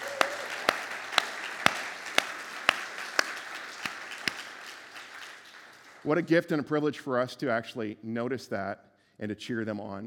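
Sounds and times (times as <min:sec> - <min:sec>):
audience applause: 0:00.0 - 0:06.4
speech: 0:06.0 - 0:10.0.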